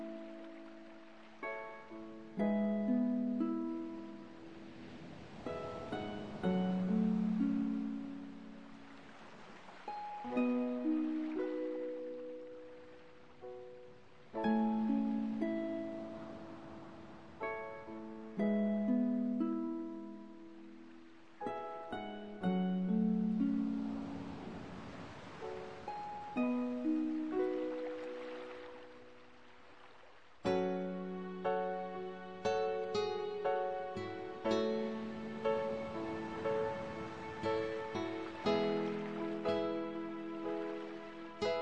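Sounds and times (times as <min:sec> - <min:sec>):
guitar: 0:00.0 - 0:04.7, 0:05.4 - 0:09.0, 0:09.8 - 0:20.8, 0:21.4 - 0:24.4, 0:25.4 - 0:29.1, 0:30.4 - 0:41.5.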